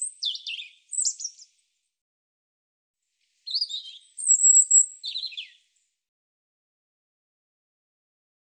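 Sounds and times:
European robin singing: 0:00.0 - 0:01.6, 0:03.4 - 0:05.7.

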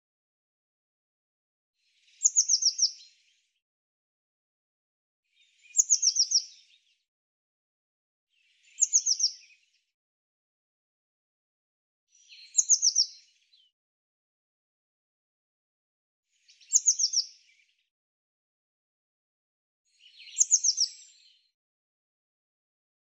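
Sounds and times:
bird song: 0:01.8 - 0:03.7, 0:05.2 - 0:07.1, 0:08.3 - 0:10.0, 0:12.1 - 0:13.8, 0:16.3 - 0:18.0, 0:19.9 - 0:21.6.

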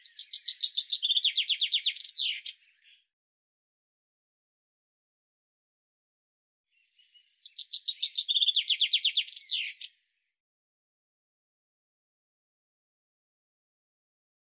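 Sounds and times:
bird singing: 0:00.0 - 0:03.1, 0:06.7 - 0:10.4.

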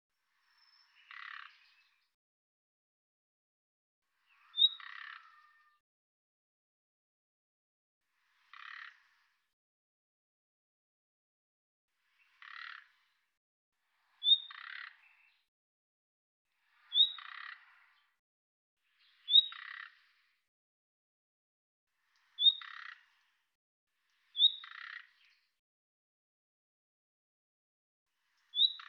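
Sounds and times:
bird calls with high sharp notes and buzzy lower tail: 0:00.5 - 0:02.1, 0:04.2 - 0:05.8, 0:14.2 - 0:15.4, 0:16.8 - 0:18.1, 0:19.0 - 0:20.1, 0:22.2 - 0:23.2, 0:24.3 - 0:25.5, 0:28.4 - 0:28.8.

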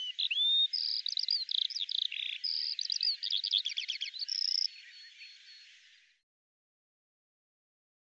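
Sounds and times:
bird song with whistled tones and trills: 0:00.0 - 0:06.2.

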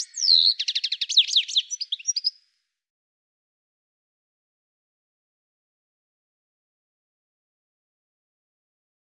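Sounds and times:
bird chirping and trilling: 0:00.0 - 0:02.4.

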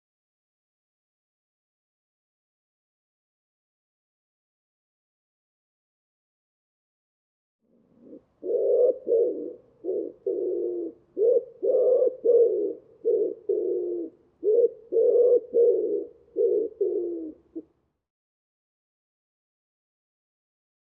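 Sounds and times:
Common Wood Pigeon cooing: 0:07.7 - 0:17.7.

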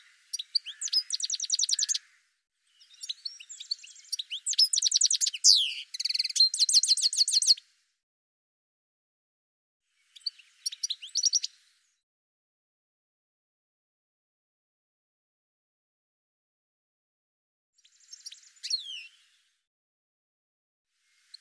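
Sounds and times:
bird twittering chirps and trills: 0:00.0 - 0:02.1, 0:02.8 - 0:07.6, 0:10.1 - 0:11.6.

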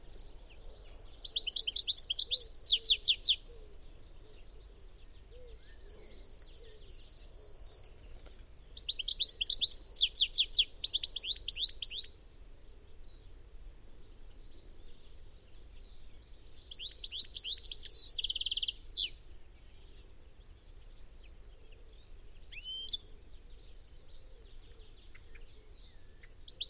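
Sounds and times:
bird giving rapid high descending chirps: 0:00.0 - 0:26.6.

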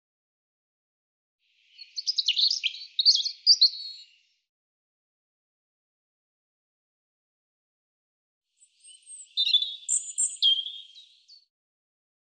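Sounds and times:
European robin singing: 0:01.7 - 0:04.2, 0:08.6 - 0:11.5.

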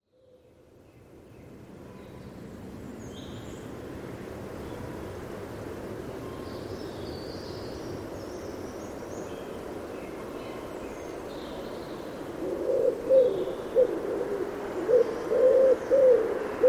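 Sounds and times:
bird cooing with soft low hollow notes: 0:12.2 - 0:16.6.

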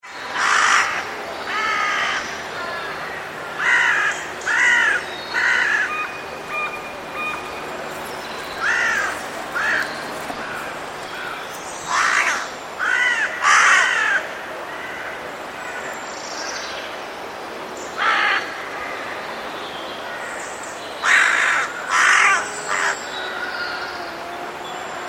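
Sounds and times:
bird cawing in harsh crow-like calls: 0:00.4 - 0:16.0, 0:18.0 - 0:19.0, 0:21.0 - 0:24.0.

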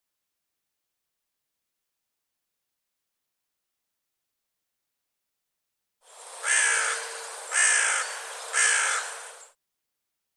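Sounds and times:
bird cawing: 0:06.4 - 0:09.6.

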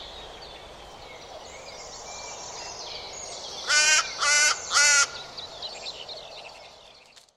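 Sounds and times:
harsh buzzy bird caws: 0:03.7 - 0:05.2.

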